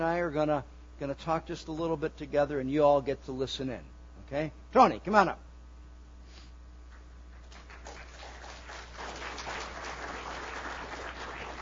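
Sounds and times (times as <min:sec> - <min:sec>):
speech: 0:00.0 - 0:05.5
audience applause: 0:07.4 - 0:11.6.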